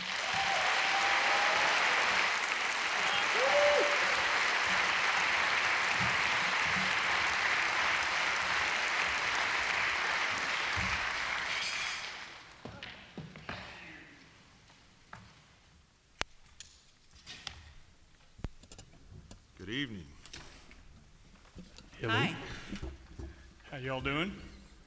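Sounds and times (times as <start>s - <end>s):
audience whistles: 0.0s - 7.7s
audience clapping to welcome a bluegrass band: 0.0s - 13.0s, 21.8s - 24.8s.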